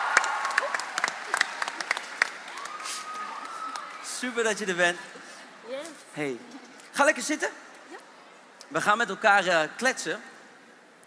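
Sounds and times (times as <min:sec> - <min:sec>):
small audience clapping: 0:00.0 - 0:04.1
speech: 0:04.2 - 0:07.6, 0:08.7 - 0:10.3.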